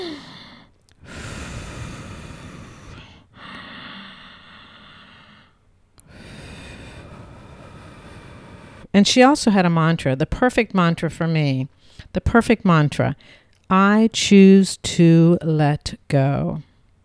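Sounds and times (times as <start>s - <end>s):
deep breath in and exhale: 0.0s - 8.9s
speech: 9.0s - 16.7s.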